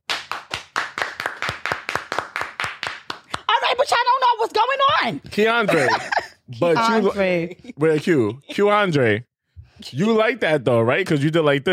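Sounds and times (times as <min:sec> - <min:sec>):
audience clapping hands: 0:00.0 - 0:03.9
speech: 0:03.8 - 0:11.7
laughter: 0:05.4 - 0:08.9.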